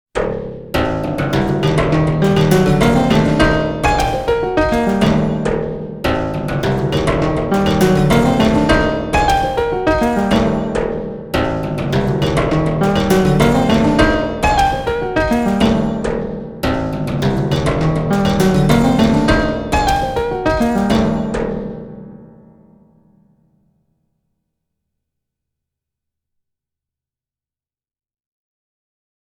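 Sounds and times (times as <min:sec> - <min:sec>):
Sequential Prophet X junk piano: 0:00.2 - 0:22.8.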